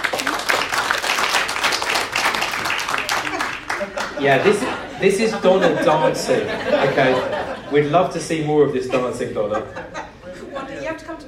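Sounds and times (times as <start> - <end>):
applause: 0.0 - 4.3
laughter: 2.1 - 11.2
speech: 4.2 - 10.0.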